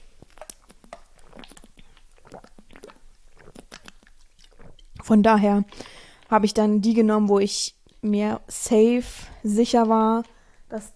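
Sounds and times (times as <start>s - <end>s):
person taking a quick sip of a drink: 0.0s - 6.3s
speech: 5.1s - 10.9s.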